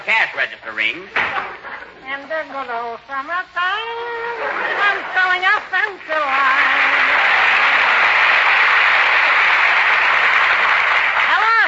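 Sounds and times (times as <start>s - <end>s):
speech: 0.4s - 7.0s
applause from many hands: 5.5s - 11.6s.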